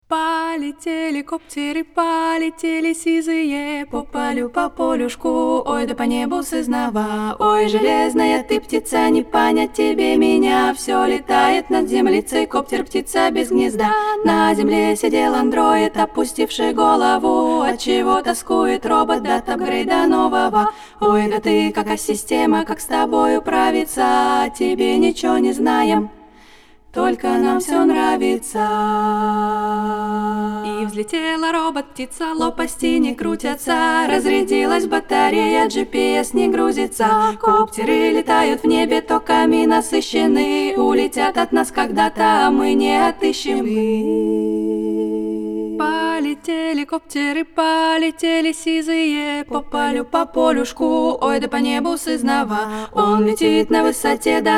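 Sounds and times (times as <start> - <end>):
Russian cyberfolk song: 0.0 - 54.5.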